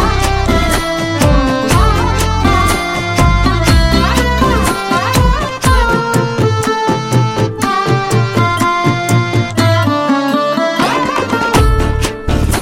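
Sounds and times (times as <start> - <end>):
karaoke ringtone: 0.1 - 12.4.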